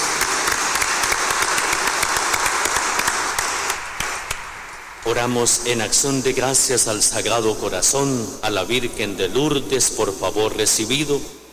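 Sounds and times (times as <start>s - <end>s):
crowd clapping: 0.0s - 6.1s
speech: 5.1s - 11.4s.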